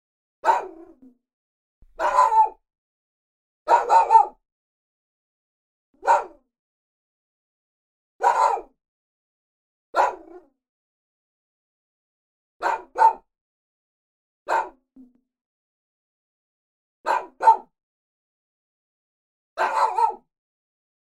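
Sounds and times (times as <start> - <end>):
dog barking: 0.4 - 1.0, 1.9 - 2.6, 3.7 - 4.4, 6.0 - 6.4, 8.2 - 8.7, 10.0 - 10.5, 12.6 - 13.3, 14.5 - 14.8, 17.0 - 17.7, 19.6 - 20.3.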